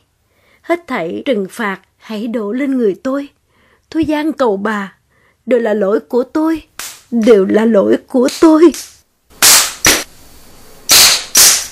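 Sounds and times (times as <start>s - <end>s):
speech: 0.7s - 8.9s
hand slapping a face: 6.8s - 7.1s, 8.3s - 10.1s, 10.9s - 11.7s.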